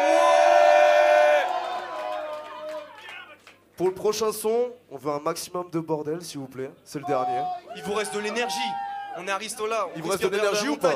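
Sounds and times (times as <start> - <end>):
live crowd cheering and shouting: 0.0 - 3.1, 7.0 - 10.9
speech: 3.8 - 10.9.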